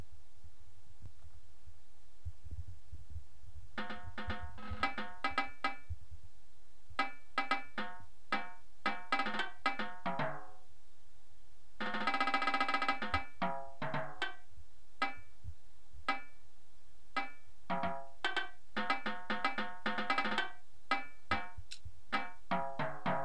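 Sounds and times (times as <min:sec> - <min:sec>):
tenor drums: 0:03.8 - 0:06.0, 0:07.0 - 0:10.6, 0:11.8 - 0:14.4, 0:17.2 - 0:23.2.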